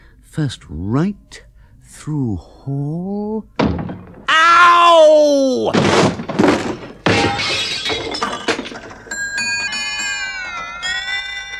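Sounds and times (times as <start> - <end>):
speech: 0.4 - 4.1, 5.0 - 7.6
someone knocking into a grandfather clock: 3.6 - 4.4, 5.7 - 11.5
grandfather clock chimes ringing: 9.1 - 11.5.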